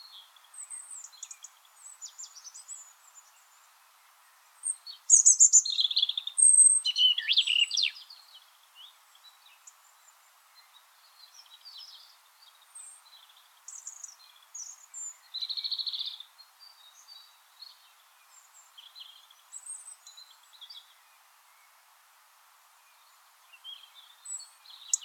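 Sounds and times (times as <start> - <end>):
European robin song, Erithacus rubecula: 0.0 - 21.8, 22.8 - 25.0.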